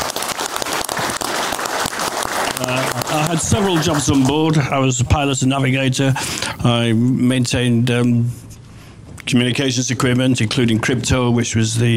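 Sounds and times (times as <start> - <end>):
applause: 0.0 - 4.6
speech: 2.6 - 8.5, 9.3 - 11.9.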